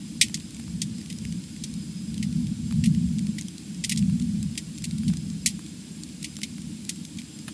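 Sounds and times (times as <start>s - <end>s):
fire crackling: 0.0s - 7.5s.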